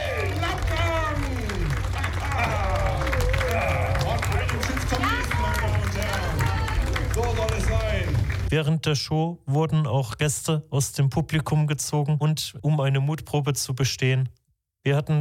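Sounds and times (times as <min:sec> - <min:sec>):
many overlapping excited voices: 0:00.0 - 0:08.0
clapping: 0:00.0 - 0:08.5
large crowd cheering: 0:00.0 - 0:08.5
speech: 0:08.5 - 0:15.1.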